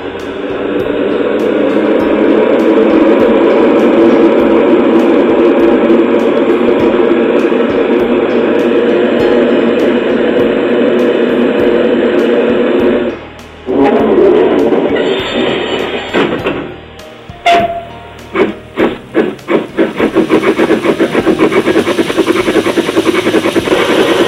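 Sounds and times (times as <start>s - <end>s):
industrial field railway steam locomotive: 0.0s - 24.2s.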